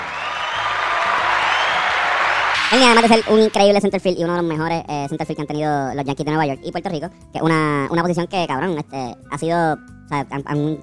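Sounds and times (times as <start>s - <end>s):
audience applause: 0.0s - 3.6s
speech: 2.7s - 10.8s.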